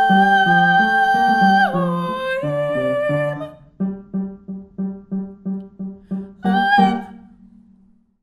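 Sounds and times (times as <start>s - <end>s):
soprano singing: 0.0s - 4.6s, 5.8s - 7.4s.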